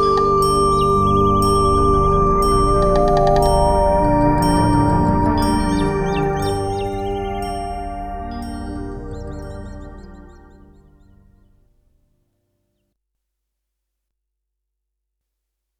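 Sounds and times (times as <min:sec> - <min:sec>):
recorder performance: 0:00.0 - 0:11.5.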